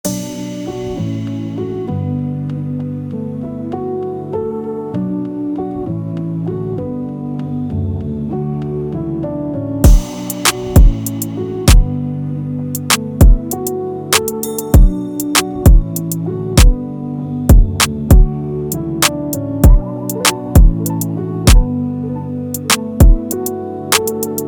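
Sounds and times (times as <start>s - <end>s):
melodic type beat: 9.8s - 11.9s, 12.8s - 16.8s, 17.5s - 21.8s, 22.5s - 24.4s.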